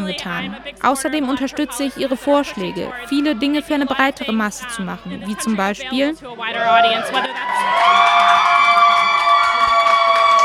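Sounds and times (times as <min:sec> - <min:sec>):
Democrats crowd cheering at election party: 0:00.0 - 0:04.4, 0:06.3 - 0:10.4
speech: 0:00.1 - 0:08.3.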